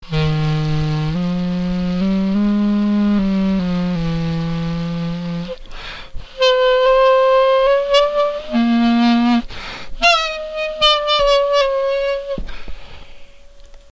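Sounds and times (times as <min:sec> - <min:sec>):
clarinet: 0:00.0 - 0:12.7.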